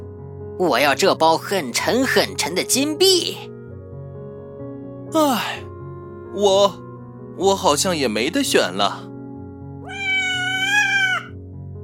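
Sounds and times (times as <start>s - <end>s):
speech: 0.6s - 3.5s, 5.1s - 5.7s, 6.3s - 6.8s, 7.4s - 9.1s
cat meowing: 9.8s - 11.4s.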